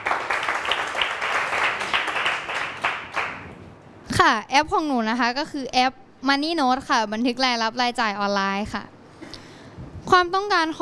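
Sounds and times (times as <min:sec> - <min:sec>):
classroom applause for presenting group: 0:00.0 - 0:03.6
speech: 0:04.2 - 0:08.9, 0:10.1 - 0:10.7.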